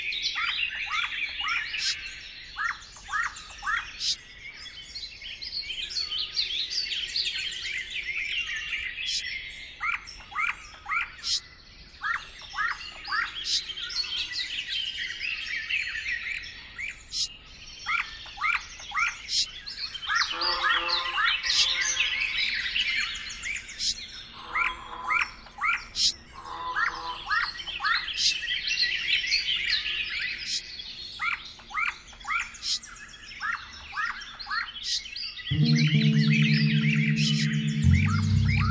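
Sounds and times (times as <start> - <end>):
birds in Klaipeda: 0.0 - 35.5
bells in Klaipeda: 35.6 - 38.7.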